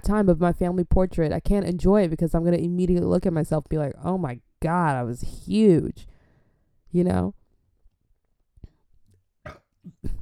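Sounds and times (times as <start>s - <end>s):
speech: 0.0s - 6.1s, 6.9s - 7.4s
person burping: 9.4s - 10.2s.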